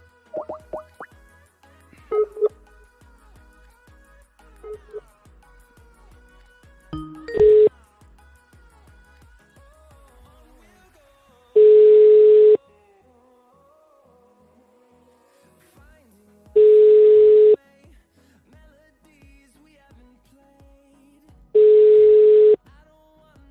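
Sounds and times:
telephone ringback tone: 0:02.1 - 0:02.5, 0:04.7 - 0:05.0, 0:07.0 - 0:07.7, 0:11.6 - 0:12.6, 0:16.6 - 0:17.6, 0:21.6 - 0:22.6.

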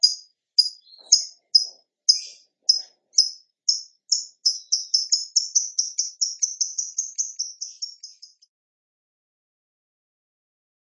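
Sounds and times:
bird song of high sharp chirped notes: 0:00.0 - 0:08.4.

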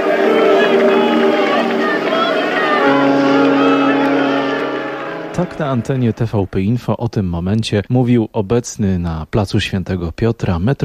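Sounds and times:
large crowd cheering and shouting in a square: 0:00.0 - 0:06.4
speech: 0:05.4 - 0:10.8.

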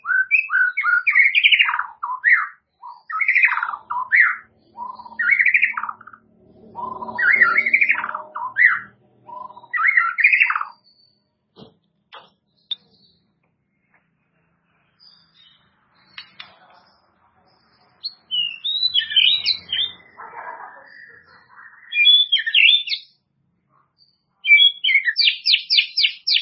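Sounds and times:
White-rumped shama song with whistles: 0:00.0 - 0:06.2, 0:06.8 - 0:11.1, 0:18.0 - 0:20.2, 0:21.8 - 0:23.2, 0:24.4 - 0:26.4.

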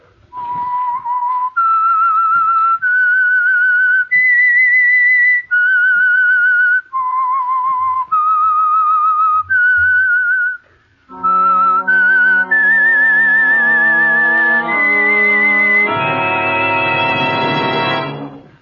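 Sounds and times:
lone whistler playing a slow eerie melody: 0:00.3 - 0:17.9
fuller instrumental passage with rising held notes: 0:11.0 - 0:18.6.

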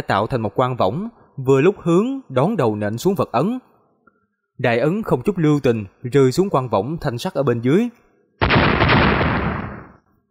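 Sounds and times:
speech: 0:00.0 - 0:03.7, 0:04.6 - 0:08.0
explosion sound effect: 0:08.4 - 0:10.1.

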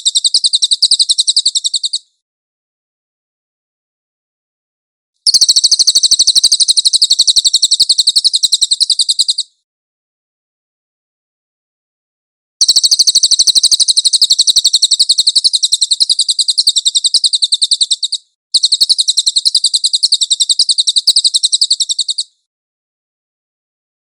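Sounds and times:
cililin chattering trill: 0:00.0 - 0:02.1, 0:05.3 - 0:09.5, 0:12.6 - 0:22.4.

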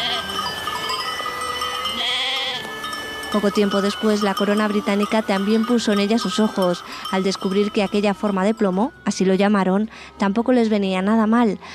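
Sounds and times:
sheep bleating: 0:00.0 - 0:00.5, 0:01.8 - 0:02.7
speech: 0:03.3 - 0:11.7.

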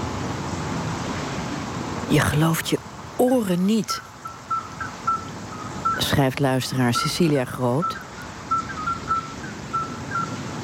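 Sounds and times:
traffic rumble: 0:00.0 - 0:10.6
speech: 0:02.1 - 0:04.1, 0:06.1 - 0:08.0
midwife toads whistling calls: 0:04.0 - 0:10.6.

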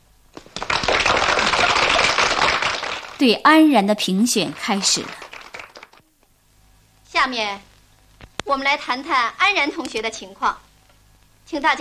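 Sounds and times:
classroom of students applauding: 0:00.4 - 0:03.2, 0:04.5 - 0:06.0
speech: 0:03.2 - 0:05.2, 0:07.3 - 0:07.7, 0:08.5 - 0:10.6, 0:11.5 - 0:11.7.

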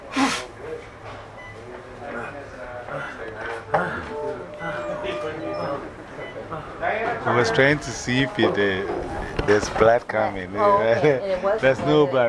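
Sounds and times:
low murmuring voices: 0:00.0 - 0:12.2
sneeze: 0:00.1 - 0:00.5
heavy breathing: 0:02.1 - 0:05.0
speech: 0:06.7 - 0:12.2.

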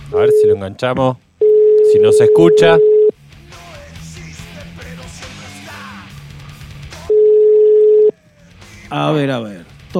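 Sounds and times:
telephone dial tone of a call: 0:00.1 - 0:00.6, 0:01.4 - 0:03.1, 0:07.1 - 0:08.1
speech: 0:00.1 - 0:01.2, 0:01.9 - 0:02.9, 0:08.9 - 0:09.9.

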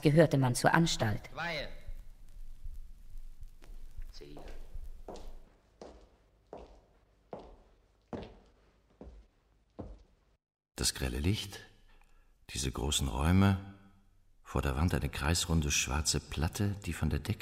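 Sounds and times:
speech: 0:00.0 - 0:01.7, 0:10.8 - 0:11.7, 0:12.5 - 0:13.7, 0:14.5 - 0:17.4
footsteps on wooden floorboards: 0:03.5 - 0:10.4.

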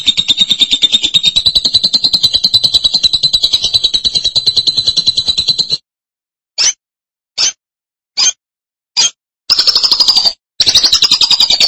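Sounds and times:
lovebird chatter: 0:00.0 - 0:05.8, 0:09.5 - 0:11.6.

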